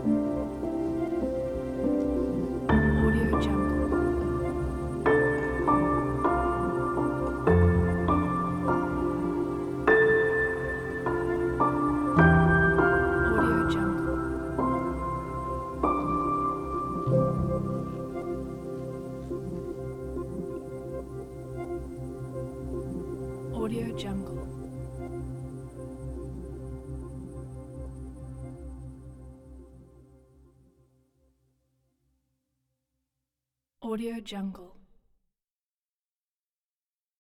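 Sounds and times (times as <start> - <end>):
sad cinematic piano texture: 0.0 - 29.8.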